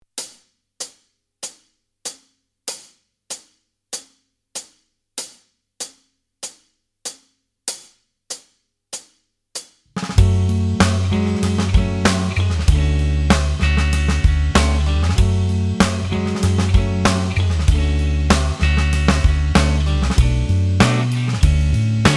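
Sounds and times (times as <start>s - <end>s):
backing track: 10.0s - 22.1s.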